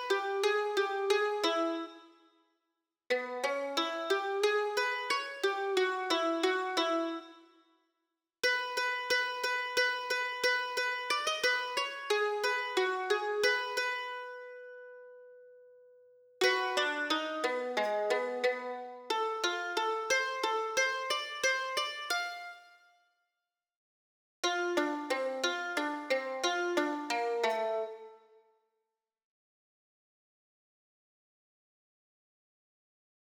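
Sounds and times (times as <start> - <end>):
mandolin major pentatonic melody: 0.0 - 2.0, 3.1 - 7.4, 8.4 - 15.0, 16.4 - 22.6, 24.4 - 28.2.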